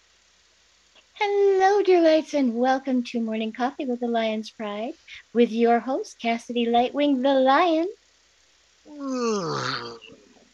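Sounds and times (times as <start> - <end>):
speech: 1.2 - 8.0, 8.9 - 10.1
person fake yawning: 8.9 - 10.2.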